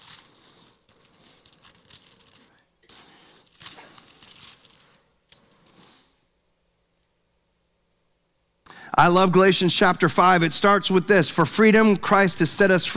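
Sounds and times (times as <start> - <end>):
Bible pages turning: 0.0 - 6.1
speech: 9.0 - 12.9.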